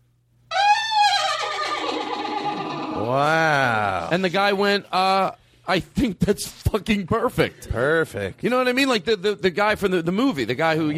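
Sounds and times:
horse neighing: 0.5s - 4.1s
speech: 4.1s - 10.9s.

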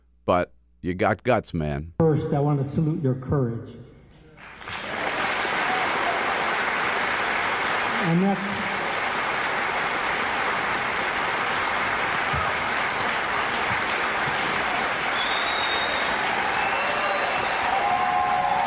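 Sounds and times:
speech: 0.3s - 3.8s, 8.0s - 8.7s
standing ovation applause: 4.4s - 18.6s.

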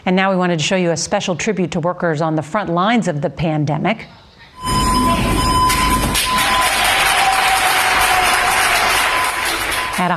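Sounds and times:
speech: 0.0s - 4.8s
large group applause: 5.1s - 10.1s.

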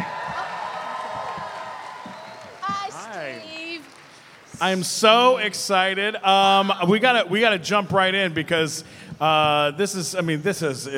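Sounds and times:
audience applause and cheering: 0.0s - 5.3s
speech: 4.6s - 10.9s.

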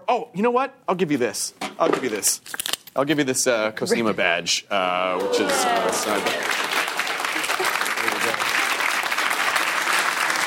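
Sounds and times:
speech: 0.1s - 6.7s
audience applause: 5.2s - 10.4s.

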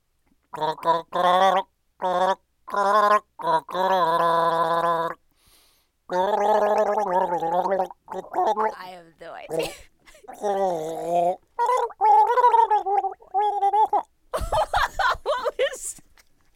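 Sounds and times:
person gargling water to a tune: 0.6s - 5.2s, 6.1s - 14.1s
speech: 0.6s - 5.2s, 6.1s - 14.1s
laughter: 9.5s - 10.3s, 14.4s - 16.0s.

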